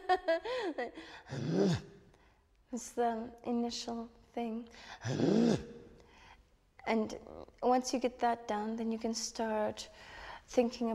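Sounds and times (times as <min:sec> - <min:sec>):
speech: 0:00.1 - 0:02.0, 0:02.7 - 0:05.8, 0:06.8 - 0:10.9
voice imitating a dog's growl for throat singing: 0:01.3 - 0:01.8, 0:05.0 - 0:05.7
short wavering vocal sounds: 0:01.3 - 0:01.9, 0:05.0 - 0:05.7.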